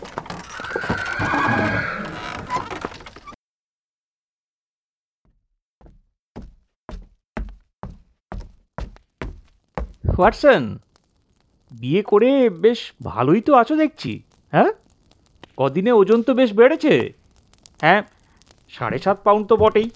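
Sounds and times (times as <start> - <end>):
horse neighing: 0.0 - 3.4
horse-drawn carriage hoofbeats clip-clopping: 0.0 - 3.4, 7.4 - 19.9
speech: 10.2 - 10.9, 11.7 - 14.8, 15.6 - 17.2, 17.8 - 18.1, 18.7 - 19.9.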